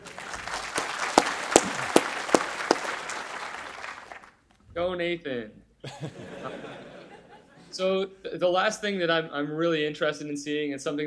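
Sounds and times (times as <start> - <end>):
audience clapping loudly: 0.0 - 4.4
speech: 4.8 - 7.1, 7.7 - 11.0
laughter: 5.8 - 7.7.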